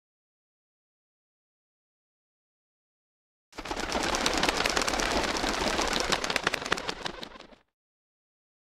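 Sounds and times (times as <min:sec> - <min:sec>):
flock of birds flying: 0:03.6 - 0:07.7.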